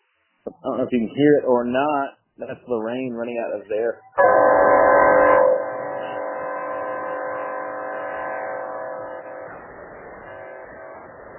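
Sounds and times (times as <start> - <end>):
speech: 0.6 - 5.0
stadium air horn: 4.2 - 11.3.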